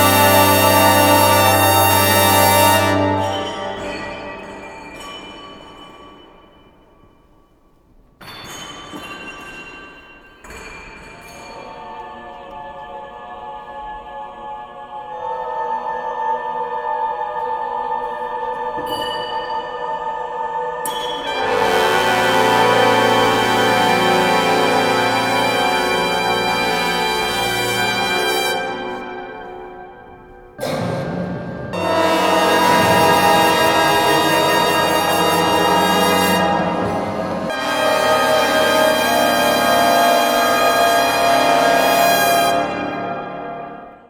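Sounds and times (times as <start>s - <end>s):
brass: 0.0s - 5.2s, 21.0s - 44.0s
choir: 0.0s - 5.3s, 11.2s - 30.8s, 31.7s - 44.0s.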